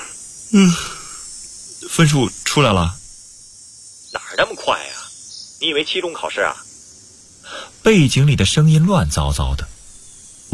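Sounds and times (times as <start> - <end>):
person yawning: 0.0 - 1.2
speech: 0.5 - 1.0, 1.9 - 3.0, 4.4 - 4.9, 5.6 - 6.7, 7.6 - 9.7.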